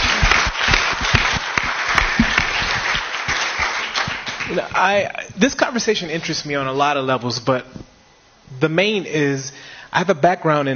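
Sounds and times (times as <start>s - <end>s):
audience applause: 0.0s - 4.8s
speech: 4.8s - 7.9s, 8.6s - 10.7s.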